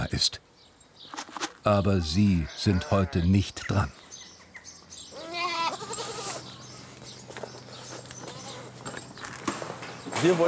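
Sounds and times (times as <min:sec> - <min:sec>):
speech: 0:00.1 - 0:00.4, 0:01.6 - 0:04.0, 0:10.2 - 0:10.4
goats bleating: 0:02.0 - 0:03.5, 0:05.2 - 0:06.7, 0:08.2 - 0:08.8.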